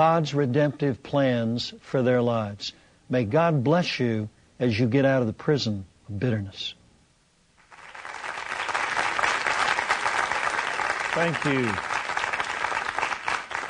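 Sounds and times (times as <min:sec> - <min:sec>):
speech: 0:00.0 - 0:06.8, 0:11.2 - 0:11.9
audience applause: 0:07.6 - 0:13.6.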